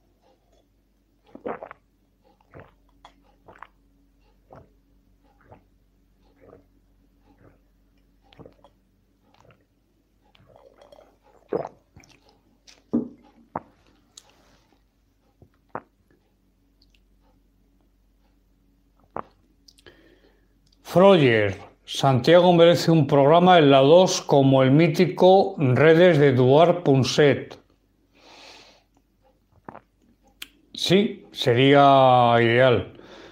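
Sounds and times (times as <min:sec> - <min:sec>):
low constant hum: 0:00.0 - 0:33.3
person sipping a soft drink: 0:00.2 - 0:03.8, 0:04.5 - 0:16.2, 0:19.0 - 0:20.1, 0:28.2 - 0:30.6
speech: 0:20.9 - 0:27.6, 0:30.9 - 0:33.0.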